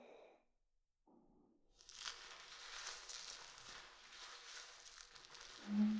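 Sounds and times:
shampoo being lathered into foam: 0:01.8 - 0:05.9.

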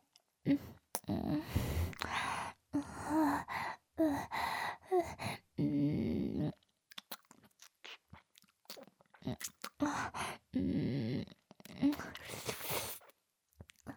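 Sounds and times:
fellatio sounds: 0:00.5 - 0:03.5, 0:05.1 - 0:13.1.

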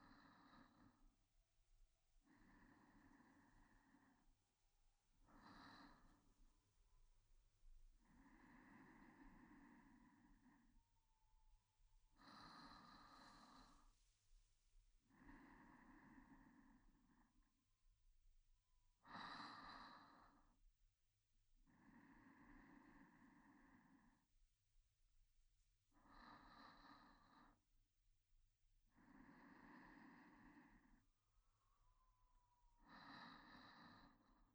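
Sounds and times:
sleep breathing: 0:00.0 - 0:01.0, 0:02.2 - 0:04.3, 0:08.0 - 0:10.8, 0:12.1 - 0:14.2, 0:15.0 - 0:17.5, 0:19.0 - 0:20.6, 0:21.7 - 0:24.3, 0:26.0 - 0:27.6, 0:28.9 - 0:34.5
ASMR sleep voice: 0:00.0 - 0:34.5.

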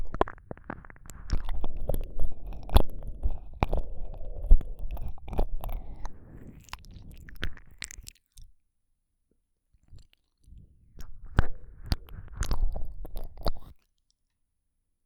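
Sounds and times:
slow slurping ear licking sounds: 0:00.0 - 0:08.4, 0:11.0 - 0:13.8.

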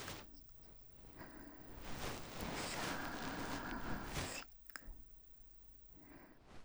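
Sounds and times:
ear pick cleaning the right ear: 0:00.0 - 0:04.8
person whispering in the right ear: 0:00.0 - 0:05.0.

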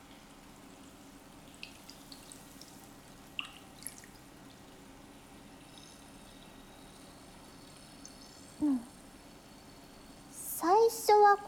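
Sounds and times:
fizzy water hiss: 0:00.1 - 0:11.4
head dipped into basin of carbonated water: 0:01.6 - 0:04.2
speech: 0:11.2 - 0:11.4.

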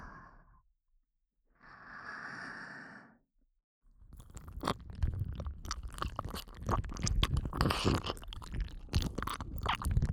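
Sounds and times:
ear licking ASMR in the right ear: 0:04.1 - 0:10.1.

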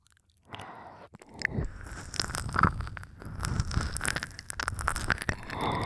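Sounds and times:
one-ear ASMR sounds: 0:01.1 - 0:05.8.

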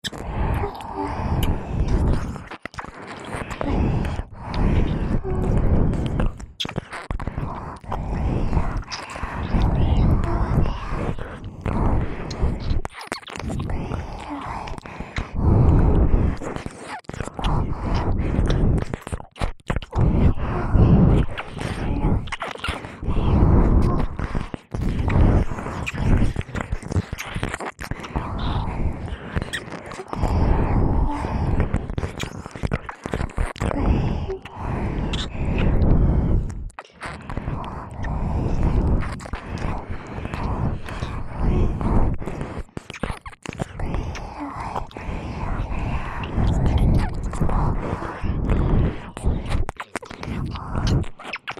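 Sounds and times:
kissing: 0:00.0 - 0:10.6, 0:12.2 - 0:15.3, 0:21.2 - 0:23.0, 0:23.8 - 0:28.6, 0:29.3 - 0:30.3, 0:31.1 - 0:35.8, 0:39.0 - 0:41.1, 0:42.2 - 0:45.0, 0:46.2 - 0:47.4, 0:49.5 - 0:51.5
breathing: 0:00.0 - 0:19.2, 0:19.8 - 0:51.4
licking in both ears: 0:00.0 - 0:51.5.

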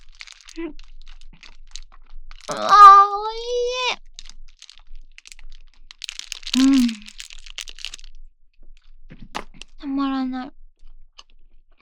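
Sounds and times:
Ministop salmon onigiri rice ball crunching being eaten: 0:00.0 - 0:02.8, 0:03.9 - 0:08.1
speech: 0:00.6 - 0:00.9, 0:02.5 - 0:03.7, 0:10.0 - 0:10.6.

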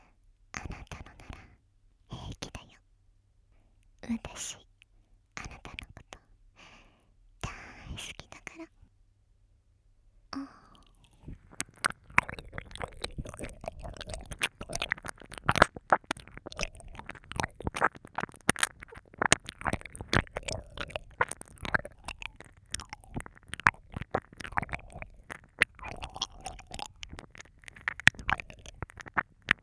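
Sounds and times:
ASMR ear licking: 0:10.7 - 0:29.6.

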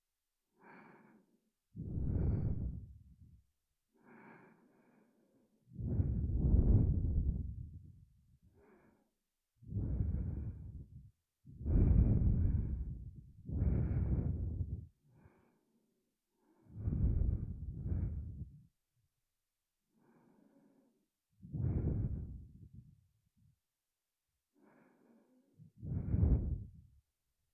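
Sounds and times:
double sweet and spicy natural breathing close to the ear: 0:00.6 - 0:03.0, 0:03.9 - 0:07.9, 0:08.5 - 0:18.7, 0:19.9 - 0:22.9, 0:24.6 - 0:26.9.

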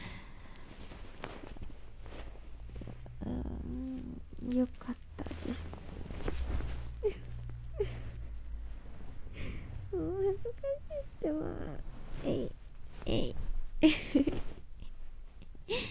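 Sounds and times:
real person breathing in sleep: 0:00.0 - 0:01.0, 0:09.3 - 0:09.9
sleep talking: 0:03.0 - 0:08.6, 0:09.3 - 0:13.6.

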